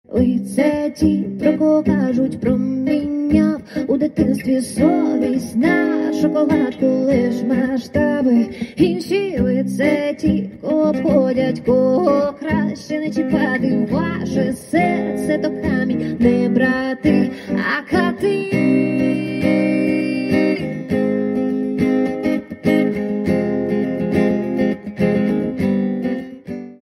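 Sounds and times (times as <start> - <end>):
acoustic music: 0.0 - 26.8.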